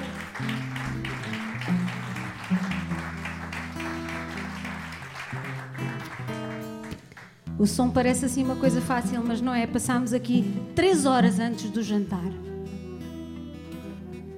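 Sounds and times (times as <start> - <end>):
audience applause: 0.0 - 7.4
speech: 7.6 - 12.5.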